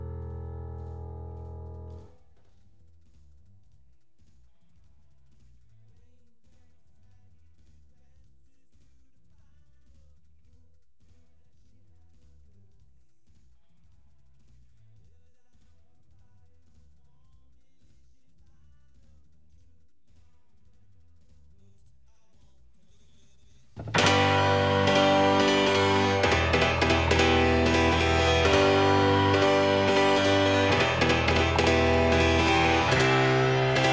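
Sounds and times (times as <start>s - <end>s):
keyboard playing: 0.0s - 2.1s, 23.8s - 33.9s.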